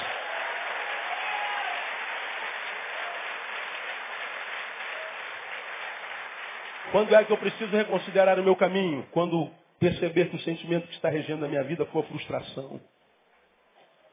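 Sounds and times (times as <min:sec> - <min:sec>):
audience applause: 0:00.0 - 0:08.2
speech: 0:06.9 - 0:13.0.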